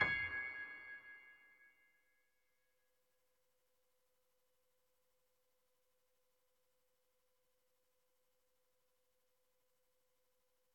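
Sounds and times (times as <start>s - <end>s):
high piano: 0.0s - 1.4s.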